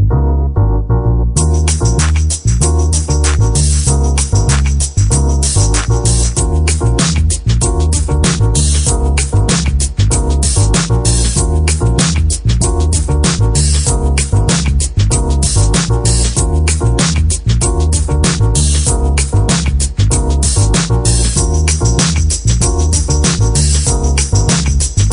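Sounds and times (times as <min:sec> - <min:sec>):
action music: 0:00.1 - 0:25.1.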